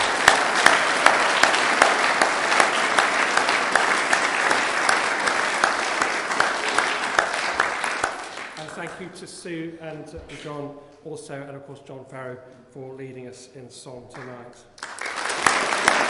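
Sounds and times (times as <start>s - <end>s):
audience applause: 0.0s - 9.2s, 14.8s - 16.0s
speech: 9.0s - 14.8s.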